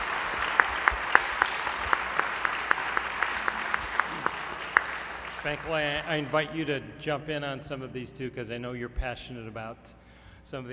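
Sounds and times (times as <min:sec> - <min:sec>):
audience round of applause: 0:00.0 - 0:06.6
speech: 0:05.4 - 0:10.7.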